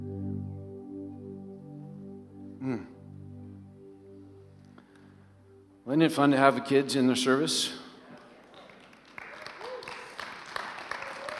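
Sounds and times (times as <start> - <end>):
speech: 2.6 - 3.0, 5.9 - 7.8
hesitant applause from audience: 8.2 - 11.3.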